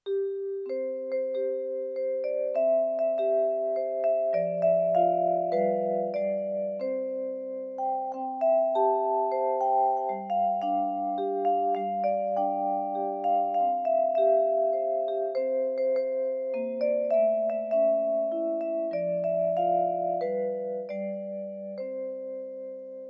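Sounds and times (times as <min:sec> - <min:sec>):
christmas carol melody: 0:00.0 - 0:23.0.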